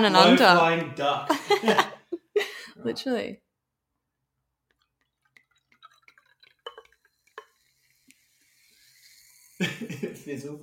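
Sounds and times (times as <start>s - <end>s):
speech: 0.0s - 2.0s, 2.8s - 3.4s, 9.6s - 10.6s
laughter: 1.2s - 2.7s, 9.6s - 10.4s
fizzing drink after bottle opened: 4.7s - 10.0s.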